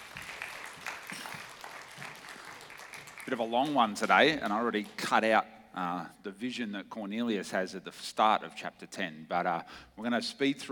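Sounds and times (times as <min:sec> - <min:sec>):
crowd clapping: 0:00.0 - 0:05.1
speech: 0:03.3 - 0:10.6.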